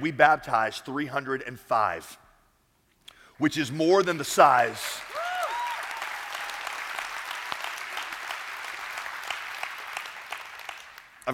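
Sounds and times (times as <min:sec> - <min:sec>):
speech: 0:00.0 - 0:02.2, 0:03.4 - 0:05.2
large audience applause: 0:04.0 - 0:11.3.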